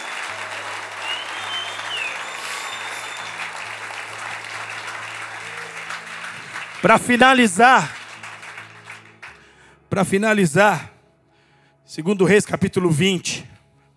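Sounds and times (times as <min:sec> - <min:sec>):
loud audience applause: 0:00.0 - 0:09.6
speech: 0:06.8 - 0:08.0, 0:10.0 - 0:10.9, 0:11.9 - 0:13.5.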